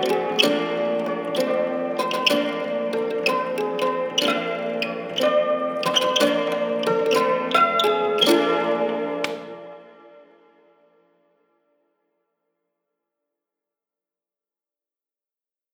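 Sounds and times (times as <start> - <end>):
mechanical pianoharp playing: 0.0 - 10.0.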